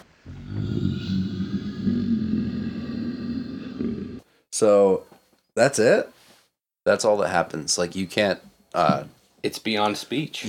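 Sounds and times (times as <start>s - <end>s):
low guttural growling: 0.2s - 4.2s
speech: 4.6s - 6.2s, 6.8s - 10.4s.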